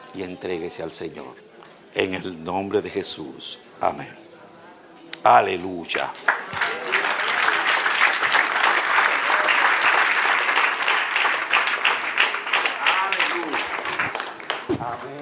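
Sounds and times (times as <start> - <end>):
speech: 0.1 - 4.3, 5.2 - 6.6
applause: 5.9 - 15.2.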